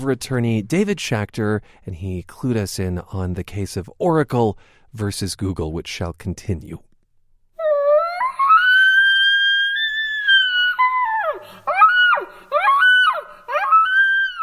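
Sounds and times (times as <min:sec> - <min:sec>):
speech: 0:00.0 - 0:06.9
girl imitating elk bugling call: 0:07.6 - 0:14.4.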